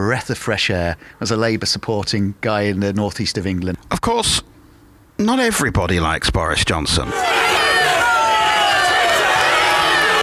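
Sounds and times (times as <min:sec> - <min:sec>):
speech: 0:00.0 - 0:04.5, 0:05.2 - 0:07.6
crowd outside a home shouting and chattering: 0:07.0 - 0:10.2.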